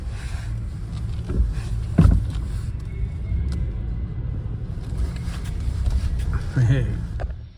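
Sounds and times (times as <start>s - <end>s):
car engine rumble making a tight turn into a home garage: 0.0s - 7.5s
brief bumps and knocks: 1.2s - 2.5s.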